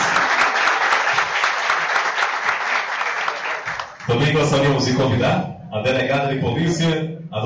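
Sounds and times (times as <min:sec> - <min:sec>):
audience applause: 0:00.0 - 0:04.2
speech: 0:04.1 - 0:07.4.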